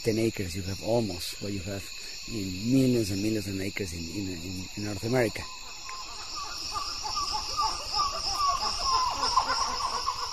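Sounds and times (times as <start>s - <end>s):
speech: 0.0s - 5.6s
family of dusky titi monkeys calling: 4.9s - 10.3s.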